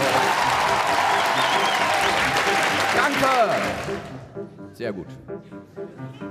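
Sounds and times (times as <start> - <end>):
audience applause: 0.0 - 4.2
speech: 3.2 - 4.1, 4.8 - 6.2.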